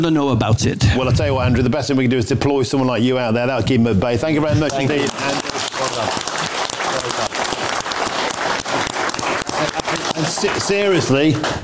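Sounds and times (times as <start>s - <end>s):
speech: 0.0s - 5.4s, 6.0s - 6.2s, 10.7s - 11.6s
audience applause: 4.6s - 11.6s.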